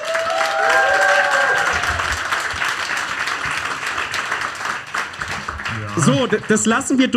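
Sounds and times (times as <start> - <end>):
live audience applause: 0.0 - 7.1
speech: 6.0 - 7.1.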